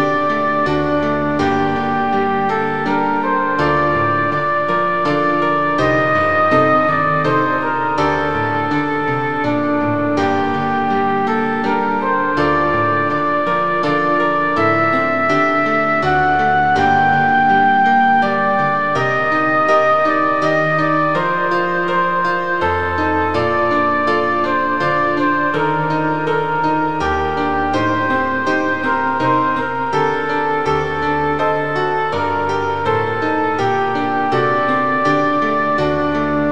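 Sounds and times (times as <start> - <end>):
flute playing an elegy: 0.0 - 36.5.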